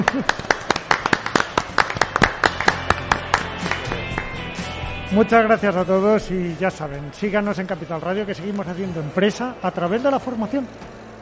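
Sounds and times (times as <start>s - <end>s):
speech: 0.0s - 0.8s, 5.1s - 11.0s
audience applause: 0.0s - 4.4s.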